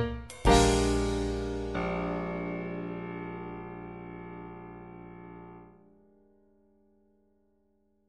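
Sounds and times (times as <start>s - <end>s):
MIDI jazz blues in B flat: 0.0s - 4.5s.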